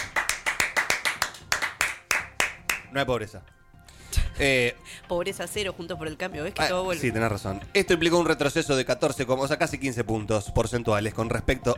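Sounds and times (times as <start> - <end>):
lone slow handclaps: 0.0 - 2.9
speech: 2.9 - 3.6, 4.4 - 11.7.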